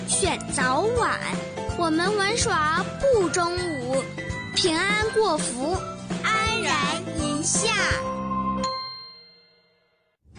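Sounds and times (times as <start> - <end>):
speech: 0.2 - 6.0, 6.6 - 8.2
ding-dong notification chime: 8.6 - 9.8.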